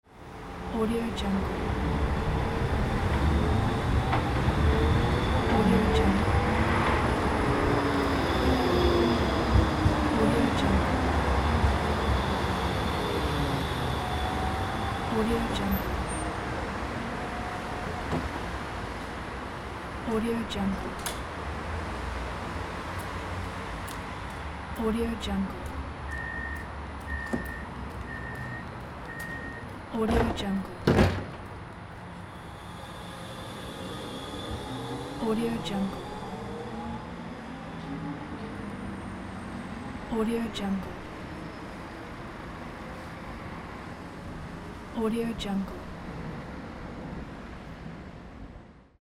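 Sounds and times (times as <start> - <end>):
tram arriving: 0.1 - 48.9.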